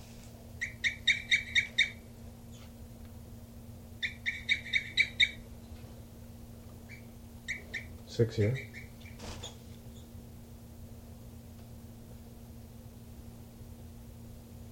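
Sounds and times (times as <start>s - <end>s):
steady low electrical hum: 0.0s - 14.6s
captive bird chirping: 0.6s - 2.7s, 4.0s - 5.4s, 6.8s - 10.1s
speech: 8.2s - 8.7s.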